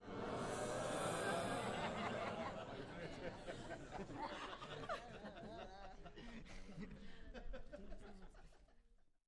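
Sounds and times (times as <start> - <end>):
small crowd booing indoors: 0.0 - 2.8
small crowd hissing indoors: 0.1 - 3.1
laughter: 0.1 - 8.9.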